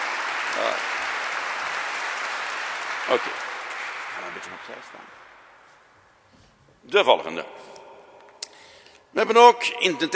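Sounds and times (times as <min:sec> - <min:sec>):
audience applause: 0:00.0 - 0:05.4
speech: 0:03.1 - 0:03.5, 0:04.2 - 0:05.3, 0:06.9 - 0:07.7, 0:09.2 - 0:10.1.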